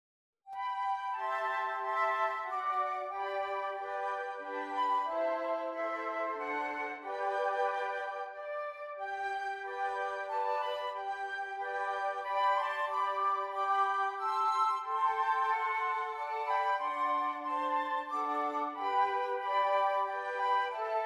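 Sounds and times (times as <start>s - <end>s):
flute: 0.5s - 21.0s.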